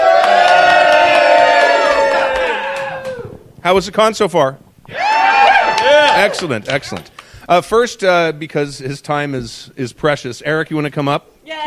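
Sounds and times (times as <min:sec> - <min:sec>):
live studio audience at a convention cheering in unison: 0:00.0 - 0:03.5, 0:04.9 - 0:07.0
speech: 0:03.6 - 0:04.7, 0:06.2 - 0:11.6.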